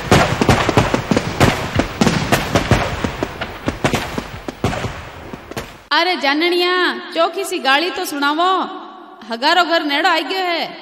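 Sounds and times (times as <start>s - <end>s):
firecracker bomb going off: 0.0s - 5.9s
speech: 5.9s - 10.8s.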